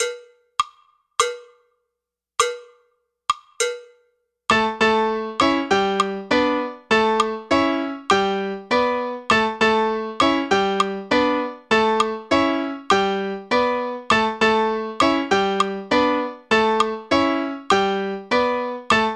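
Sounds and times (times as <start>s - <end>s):
slow tumbao bass rhythm: 4.5s - 19.1s.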